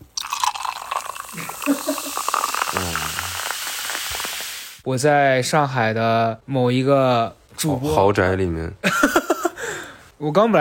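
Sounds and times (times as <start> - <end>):
Sprite soda being poured, fizzing: 0.0 - 4.8
speech: 1.6 - 3.2, 4.8 - 9.2, 10.2 - 10.5.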